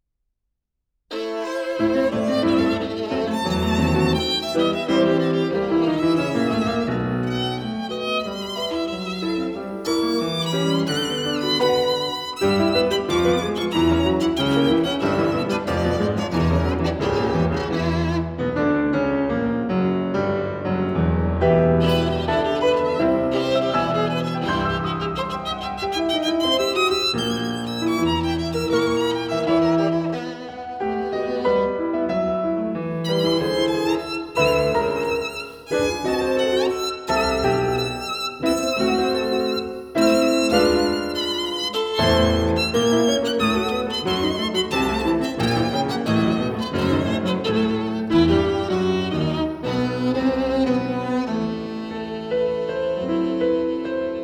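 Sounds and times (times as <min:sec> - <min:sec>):
violin: 0:01.1 - 0:19.3, 0:20.2 - 0:54.2
piano: 0:01.1 - 0:54.2.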